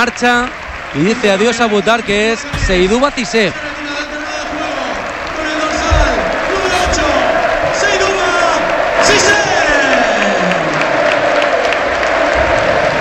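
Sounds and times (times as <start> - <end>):
speech: 0.0 - 3.8
murmur of cheering voices: 0.0 - 12.9
stadium crowd applauding a substituted player: 0.0 - 12.9.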